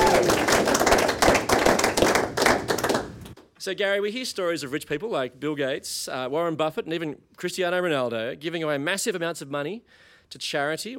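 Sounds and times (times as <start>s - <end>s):
applause: 0.0s - 3.4s
speech: 3.6s - 10.9s.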